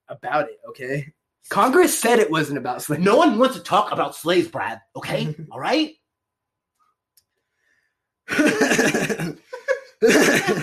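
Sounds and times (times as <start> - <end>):
speech: 0.1 - 6.0, 8.3 - 9.4, 10.0 - 10.6
big harsh cough turning into hearty laughter: 8.3 - 9.4, 10.0 - 10.6.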